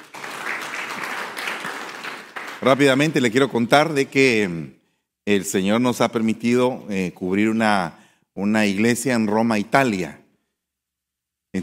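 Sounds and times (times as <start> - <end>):
audience applause: 0.0 - 3.2
speech: 2.6 - 10.2.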